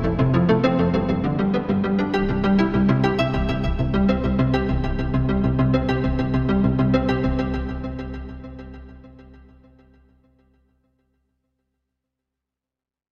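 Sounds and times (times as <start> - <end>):
Celtic synth music: 0.0 - 9.7.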